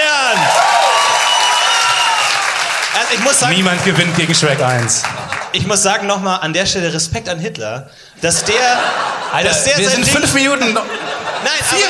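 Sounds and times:
audience applause: 0.2 - 5.6
laughter: 3.0 - 5.9, 8.2 - 11.8
speech: 3.1 - 11.8.

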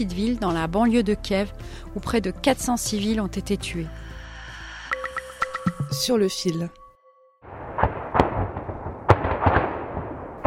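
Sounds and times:
speech: 0.0 - 4.1, 5.9 - 6.8
artillery fire in the war in the Donetsk region: 7.5 - 10.4.

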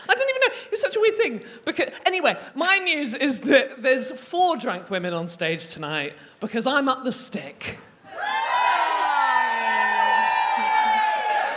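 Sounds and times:
speech: 1.1 - 7.9
crowd cheering and whooping: 8.1 - 11.5.

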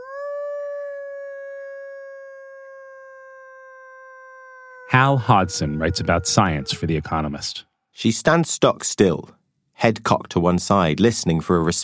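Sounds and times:
person howling to imitate a wolf: 0.0 - 7.4
speech: 4.9 - 11.8.

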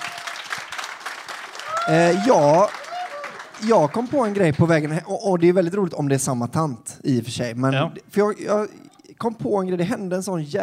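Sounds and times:
applause: 0.0 - 5.2
speech: 1.8 - 2.8, 3.6 - 10.6.

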